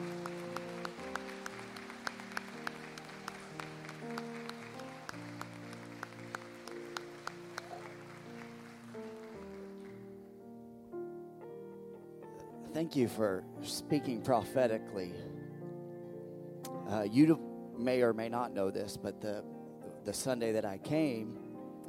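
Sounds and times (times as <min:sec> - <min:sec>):
audience hand clapping: 0:00.0 - 0:10.2
speech: 0:12.8 - 0:15.4, 0:16.9 - 0:21.4.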